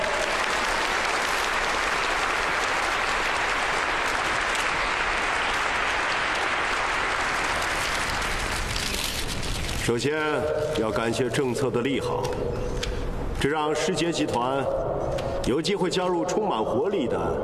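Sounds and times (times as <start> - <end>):
audience applause: 0.0 - 9.5
speech: 9.9 - 17.4.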